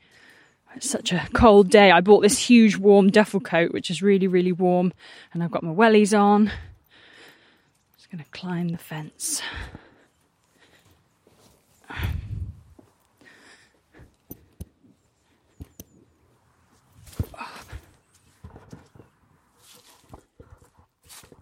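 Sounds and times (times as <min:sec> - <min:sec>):
speech: 0:00.7 - 0:06.7, 0:08.1 - 0:09.8
footsteps crunching through dry fallen leaves: 0:19.6 - 0:20.3, 0:21.0 - 0:21.4.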